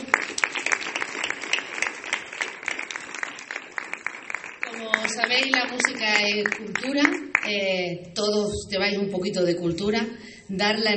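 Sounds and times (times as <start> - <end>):
audience applause: 0.0 - 7.4
speech: 5.2 - 10.9.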